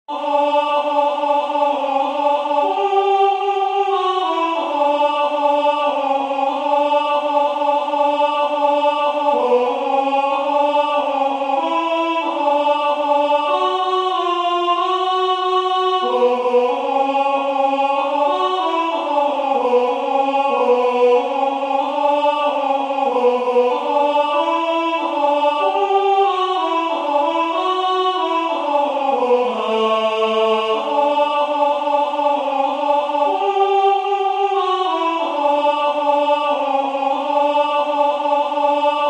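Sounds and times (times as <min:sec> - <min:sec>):
alto part of four-voice piece: 0:00.1 - 0:39.0.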